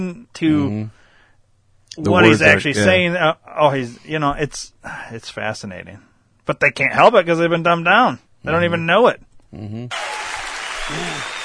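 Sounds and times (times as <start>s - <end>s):
speech: 0.0s - 1.0s, 2.0s - 10.2s, 10.9s - 11.4s
audience clapping: 9.9s - 11.4s.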